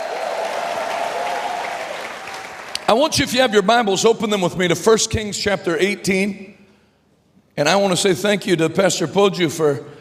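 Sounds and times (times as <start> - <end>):
church congregation clapping: 0.0 - 3.4
speech: 2.9 - 6.6, 7.6 - 9.9.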